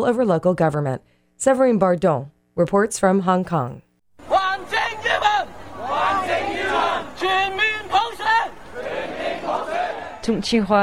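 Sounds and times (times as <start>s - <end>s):
speech: 0.0s - 4.3s, 10.3s - 10.8s
protest crowd shouting slogans in Hong Kong: 4.2s - 10.4s.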